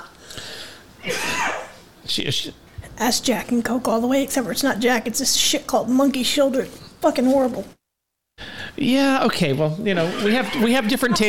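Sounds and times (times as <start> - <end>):
woman coughing after sipping whiskey mixed with cola: 1.0 - 1.7
speech: 2.1 - 7.8, 8.8 - 11.2
laughter: 9.9 - 11.2.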